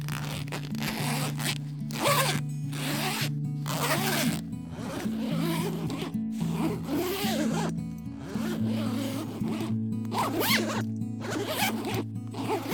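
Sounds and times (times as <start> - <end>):
zippers being zipped on jumpsuit: 0.0 - 12.7.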